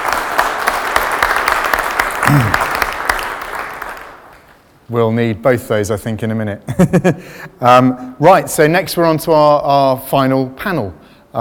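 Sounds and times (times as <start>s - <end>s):
audience applause: 0.0s - 4.4s
speech: 2.3s - 2.7s, 4.9s - 11.4s.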